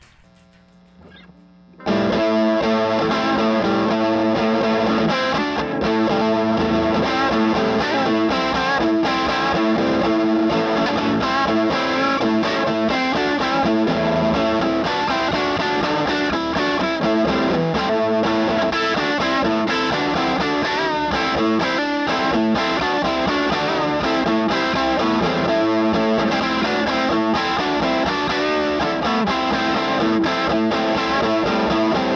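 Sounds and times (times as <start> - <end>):
murky music on a little necked guitar: 0.0 - 32.1.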